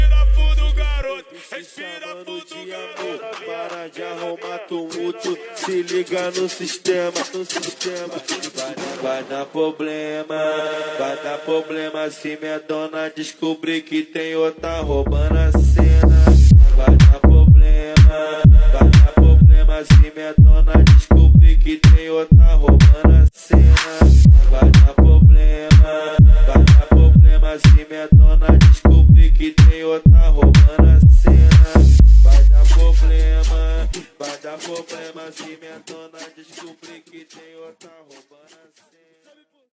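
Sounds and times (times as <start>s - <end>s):
low bass: 0.0s - 1.0s, 14.6s - 21.7s, 22.3s - 27.5s, 28.1s - 29.5s, 30.1s - 34.0s.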